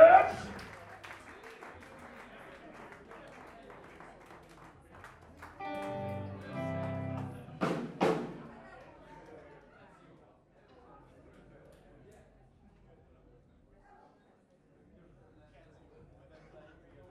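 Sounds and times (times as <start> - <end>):
audience applause for a band: 0.0 - 7.8.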